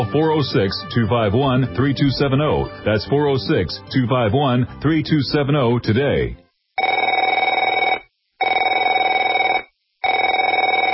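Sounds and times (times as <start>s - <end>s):
speech: 0.1s - 6.4s
telephone ringing with electronic-bell tone: 6.8s - 10.9s.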